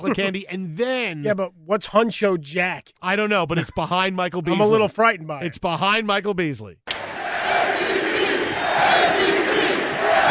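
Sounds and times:
laughter: 0:00.0 - 0:00.5, 0:03.5 - 0:04.9
speech: 0:00.0 - 0:06.9
large arena crowd chanting: 0:06.9 - 0:10.2.

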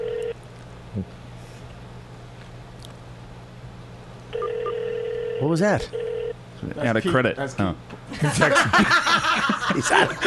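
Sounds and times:
telephone dialing and ringing: 0:00.0 - 0:00.3, 0:04.4 - 0:05.4, 0:06.0 - 0:06.3
speech: 0:01.0 - 0:01.2, 0:05.4 - 0:10.2
laughter: 0:08.1 - 0:10.2.

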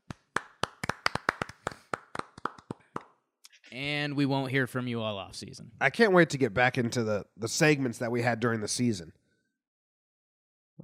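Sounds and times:
hands clapping: 0:00.0 - 0:03.2
speech: 0:03.7 - 0:09.2.

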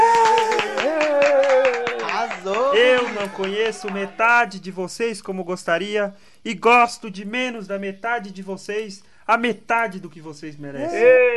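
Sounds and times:
applause: 0:00.0 - 0:04.2
speech: 0:03.1 - 0:11.3.

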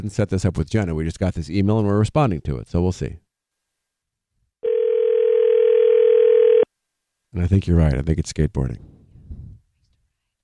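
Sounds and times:
speech: 0:00.0 - 0:03.2, 0:07.3 - 0:08.9
outgoing phone call ringing tone: 0:04.6 - 0:06.7.

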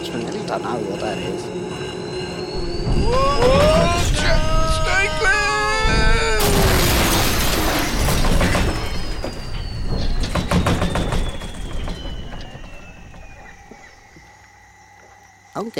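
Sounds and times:
descending whistle of a falling spaceship: 0:00.0 - 0:15.2
speech: 0:00.2 - 0:01.7, 0:02.6 - 0:03.7, 0:15.6 - 0:15.7
spaceship crashing down: 0:02.6 - 0:13.7
rumbling of settling debris: 0:02.6 - 0:14.0
metallic clanks of settling debris: 0:06.4 - 0:13.9.

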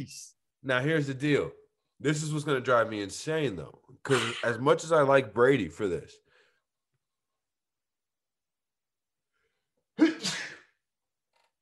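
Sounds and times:
speech: 0:00.0 - 0:06.2
sneeze: 0:04.1 - 0:04.6, 0:10.0 - 0:10.8.

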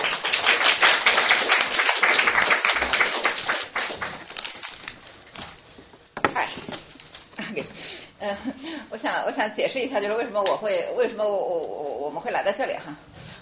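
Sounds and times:
audience applause: 0:00.0 - 0:04.8
speech: 0:08.2 - 0:13.1.

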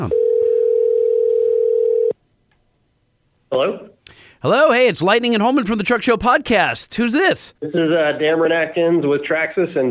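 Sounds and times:
speech: 0:00.0 - 0:00.2, 0:03.5 - 0:09.8
phone call ringing tone: 0:00.0 - 0:02.2.

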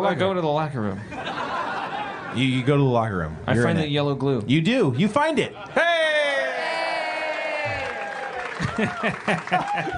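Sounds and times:
speech: 0:00.0 - 0:01.4, 0:02.3 - 0:06.1, 0:08.8 - 0:09.9
laughter: 0:01.0 - 0:02.7, 0:08.4 - 0:09.9
audience cheering: 0:05.8 - 0:09.9
audience applause: 0:06.4 - 0:09.9.

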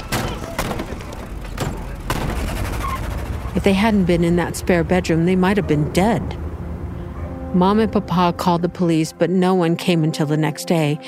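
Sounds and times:
gunshots: 0:00.0 - 0:03.2
speech: 0:03.6 - 0:06.4, 0:07.6 - 0:11.0.

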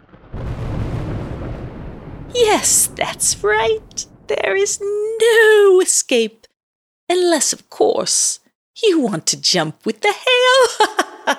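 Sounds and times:
distant thunder rumbling: 0:00.0 - 0:05.6
speech: 0:02.3 - 0:06.4, 0:07.1 - 0:11.3.

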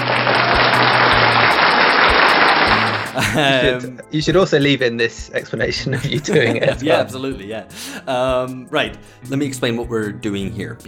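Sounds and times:
applause audio clip from the internet: 0:00.0 - 0:03.2
laughter: 0:02.8 - 0:04.0, 0:05.7 - 0:07.3
speech: 0:03.3 - 0:10.8.

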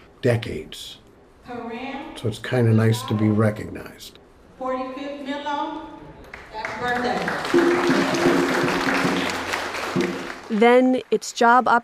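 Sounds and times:
speech: 0:00.2 - 0:04.8, 0:06.8 - 0:08.7, 0:10.0 - 0:11.8
light applause from an audience seated in a circle at a community gathering: 0:06.2 - 0:11.2.

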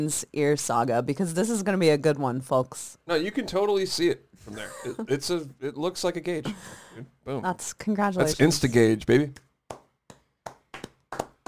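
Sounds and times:
speech: 0:00.0 - 0:09.4
sparse hand claps: 0:09.4 - 0:11.4.

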